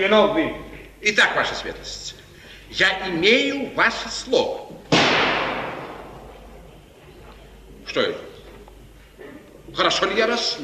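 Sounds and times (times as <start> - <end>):
speech: 0.0 - 4.8, 7.9 - 8.3, 9.7 - 10.6
gunshot: 4.9 - 6.3.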